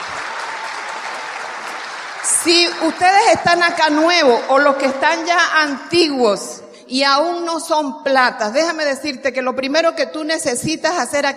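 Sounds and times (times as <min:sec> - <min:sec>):
audience applause: 0:00.0 - 0:03.2
speech: 0:02.4 - 0:11.3.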